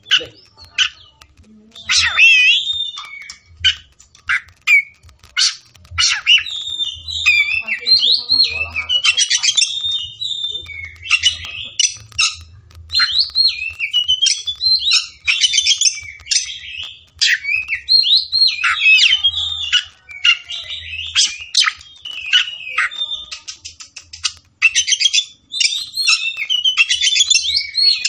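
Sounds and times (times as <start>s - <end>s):
Oriental magpie-robin singing: 1.8s - 28.0s.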